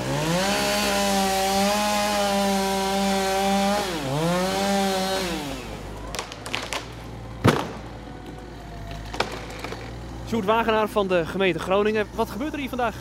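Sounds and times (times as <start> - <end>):
chainsaw cutting into a tree: 0.0 - 8.0
tree wood creaking and cracking: 5.9 - 10.2
sharp thud: 7.4 - 7.9
speech: 10.4 - 12.9.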